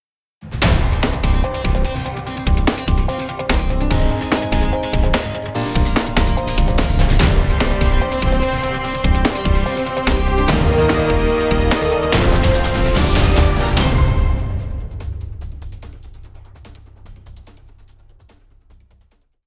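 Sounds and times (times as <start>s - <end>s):
news jingle: 0.7s - 15.4s.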